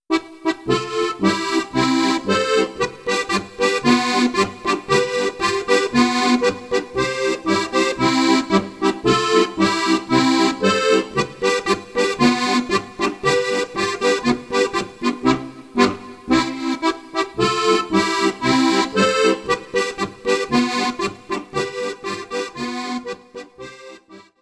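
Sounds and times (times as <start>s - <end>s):
polka music: 0.1s - 24.4s.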